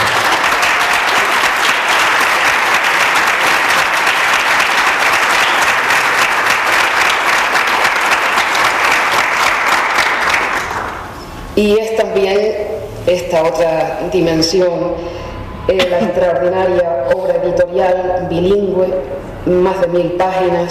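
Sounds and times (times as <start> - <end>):
audience applause: 0.0 - 11.2
speech: 11.6 - 20.6.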